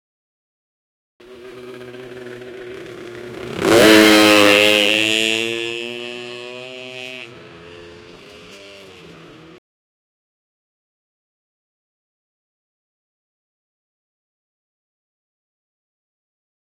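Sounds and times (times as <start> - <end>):
retro sounding 125cc motorbike engine: 1.2 - 9.6.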